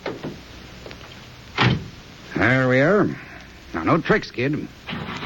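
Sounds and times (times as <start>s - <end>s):
car door shutting: 1.6s - 1.9s
speech: 2.4s - 3.2s, 3.8s - 4.8s.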